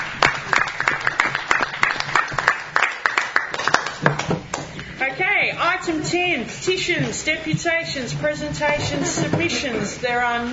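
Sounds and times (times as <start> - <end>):
group applauding: 0.0 - 4.8
speech: 5.8 - 10.5.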